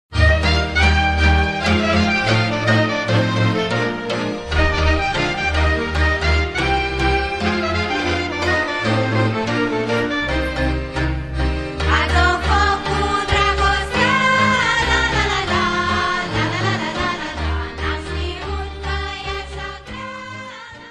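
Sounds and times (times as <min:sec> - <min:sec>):
Romanian folk dance suite from Valea Hartibaciului: 0:00.1 - 0:20.8.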